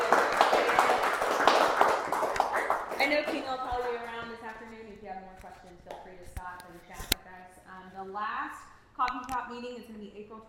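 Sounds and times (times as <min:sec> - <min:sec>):
attendees at a community coffee meeting applauding: 0:00.0 - 0:03.6
speech: 0:08.0 - 0:10.4.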